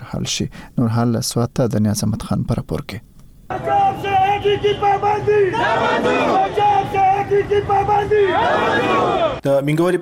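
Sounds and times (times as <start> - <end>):
speech: 0.2 - 3.1, 4.4 - 10.0
protesters chanting at a flour ban demonstration in Mingora, Swat: 3.5 - 9.4.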